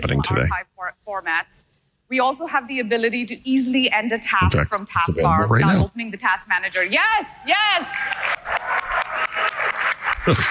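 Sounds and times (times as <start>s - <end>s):
speech: 0.0s - 8.4s, 10.2s - 10.4s
audience applause: 8.0s - 10.4s.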